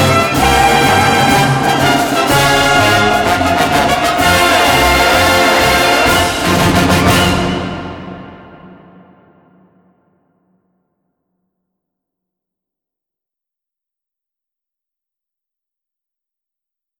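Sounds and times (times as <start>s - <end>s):
orchestra: 0.0s - 9.3s.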